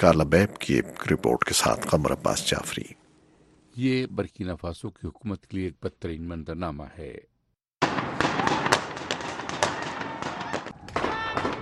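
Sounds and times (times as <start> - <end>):
speech: 0.0 - 3.0, 3.8 - 7.3
gunfire during a staged security drill in Burkina Faso: 7.8 - 11.6.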